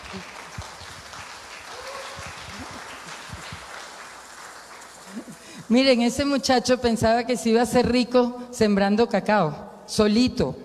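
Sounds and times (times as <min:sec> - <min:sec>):
audience applause: 0:00.0 - 0:05.7
speech: 0:00.1 - 0:00.3, 0:05.7 - 0:10.6.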